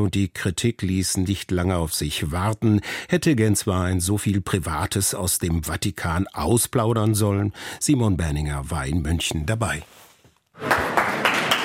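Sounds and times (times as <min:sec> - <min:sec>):
speech: 0:00.0 - 0:10.0, 0:10.6 - 0:11.0
audience applause: 0:10.6 - 0:11.6.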